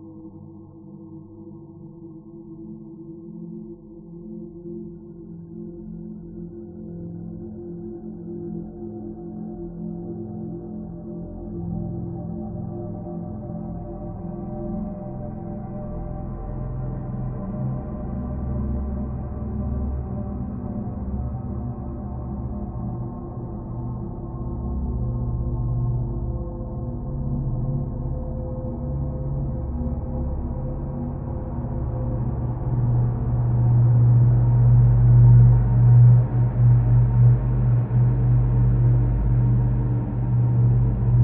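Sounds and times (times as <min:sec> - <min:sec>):
dark sinister evolving horror atmosphere: 0:19.0 - 0:41.2.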